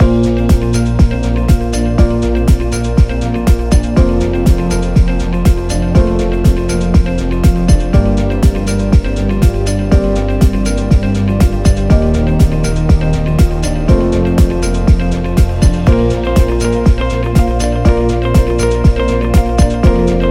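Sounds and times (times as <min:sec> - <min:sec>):
education music loop: 0:00.0 - 0:20.2.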